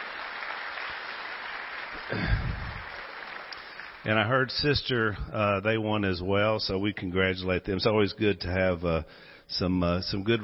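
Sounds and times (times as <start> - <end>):
audience applause: 0.0 - 4.5
speech: 2.0 - 2.7, 4.0 - 10.4.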